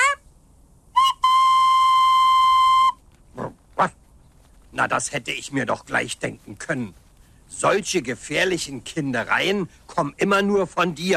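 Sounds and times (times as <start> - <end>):
toy locomotive whistle: 1.0 - 3.0
speech: 4.8 - 7.0, 7.6 - 11.1.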